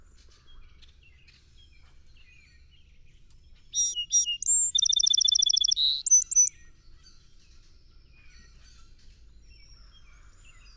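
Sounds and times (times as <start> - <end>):
song sparrow song: 0.0 - 10.7.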